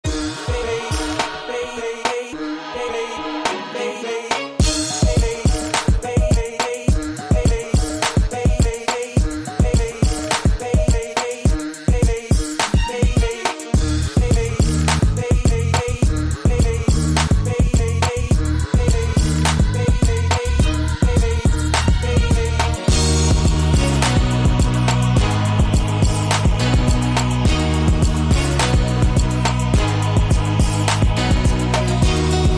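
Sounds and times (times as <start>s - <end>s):
trance music: 0.0s - 32.5s.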